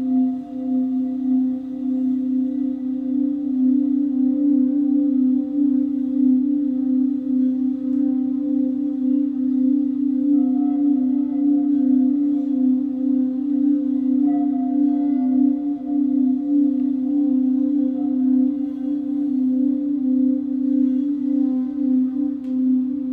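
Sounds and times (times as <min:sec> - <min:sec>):
crystal singing bowls humming: 0:00.0 - 0:23.1.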